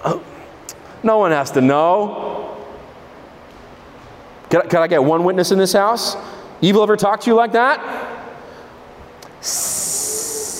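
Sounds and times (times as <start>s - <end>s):
speech: 0.0s - 0.3s, 1.0s - 2.3s, 4.5s - 8.0s, 9.4s - 9.7s
voice imitating a snake hiss: 9.4s - 10.5s.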